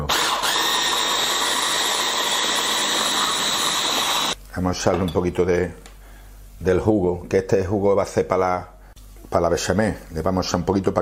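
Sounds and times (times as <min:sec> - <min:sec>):
blender grinding vegetables: 0:00.0 - 0:04.4
speech: 0:04.6 - 0:05.8, 0:06.6 - 0:08.7, 0:09.3 - 0:11.0.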